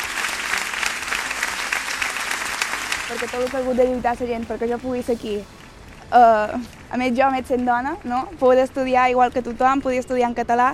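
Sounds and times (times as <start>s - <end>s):
audience applause: 0.0s - 4.1s
speech: 3.1s - 10.7s.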